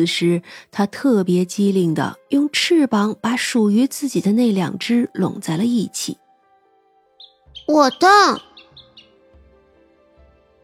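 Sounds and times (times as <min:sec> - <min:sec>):
speech: 0:00.0 - 0:06.2, 0:07.7 - 0:08.5
sparrow chirping: 0:07.2 - 0:09.2.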